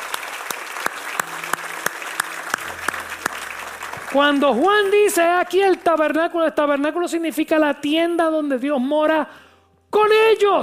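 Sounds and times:
audience applauding in a steady rhythm: 0.0 - 6.2
speech: 4.1 - 9.4, 10.0 - 10.6.

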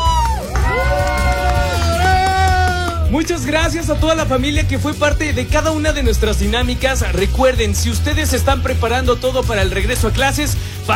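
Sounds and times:
crowd applause: 0.0 - 3.8
speech: 3.1 - 10.9.

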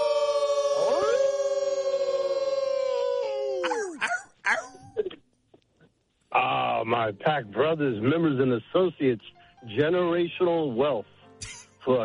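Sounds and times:
person howling like a wolf: 0.0 - 4.7
person yelping barks: 3.2 - 4.9
speech: 6.9 - 12.0.

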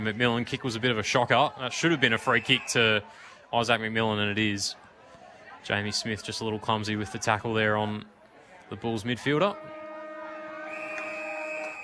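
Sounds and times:
speech: 0.0 - 4.8, 5.6 - 8.1, 8.7 - 9.8
quarter-time siren at football ground: 9.9 - 11.8.

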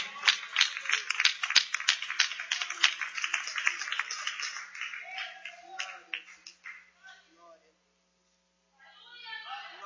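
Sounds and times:
audience clapping hands: 0.0 - 6.9.

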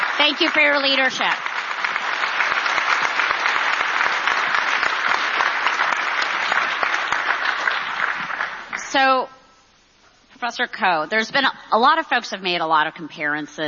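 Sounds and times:
audience applause: 0.0 - 8.8
speech: 0.2 - 1.5, 8.9 - 9.4, 10.4 - 13.6.

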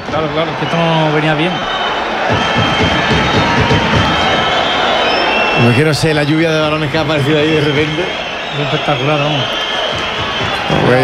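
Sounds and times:
stadium crowd cheering: 0.0 - 11.0
speech: 0.1 - 4.1, 5.6 - 9.6, 10.7 - 11.0.

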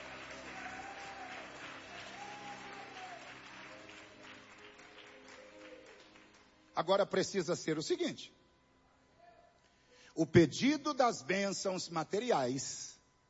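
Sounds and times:
audience applause: 0.0 - 6.7
speech: 6.8 - 8.4, 10.2 - 12.9.

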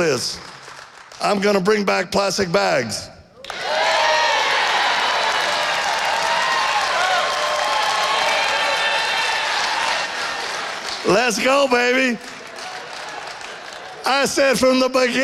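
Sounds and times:
speech: 0.0 - 0.5, 1.2 - 3.1, 11.0 - 12.4, 14.0 - 15.2
large crowd applauding: 0.0 - 1.5, 3.4 - 15.2
whoops and shouts: 3.4 - 10.1.

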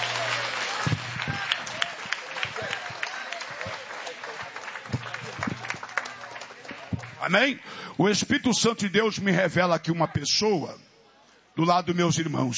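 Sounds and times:
audience clapping hands: 0.0 - 7.8
speech: 7.3 - 10.9, 11.6 - 12.5.

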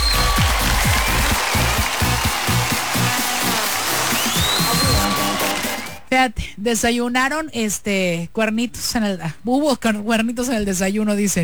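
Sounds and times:
loud audience applause: 0.0 - 6.1
speech: 6.1 - 11.4.

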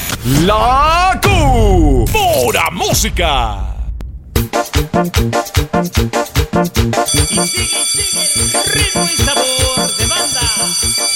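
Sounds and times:
speech: 0.2 - 3.7, 4.6 - 11.0
school recess bell ringing: 7.1 - 11.1.

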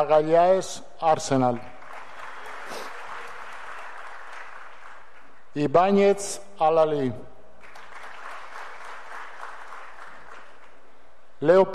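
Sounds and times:
speech: 0.0 - 1.7, 5.6 - 7.3, 11.4 - 11.7
crowd applause: 1.8 - 5.4, 7.6 - 10.8.

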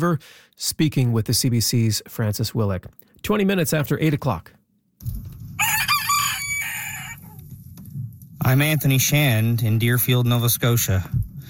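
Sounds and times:
speech: 0.0 - 5.2, 8.4 - 11.2
rooster crowing: 5.6 - 7.4.

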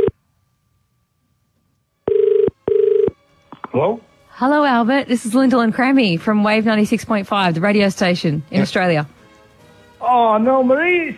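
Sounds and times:
telephone ringing on an outgoing call: 2.1 - 3.2
speech: 3.7 - 9.2, 10.1 - 11.1.

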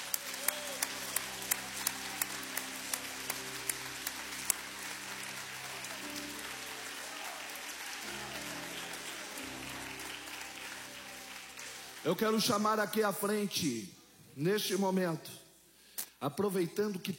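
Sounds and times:
audience applauding: 0.0 - 13.2
speech: 12.0 - 15.4, 16.2 - 17.1.

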